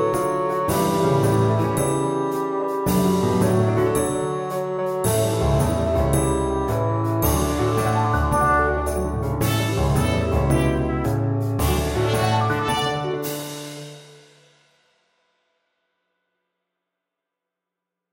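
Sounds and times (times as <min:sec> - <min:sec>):
bassoon melody: 0:00.0 - 0:13.5.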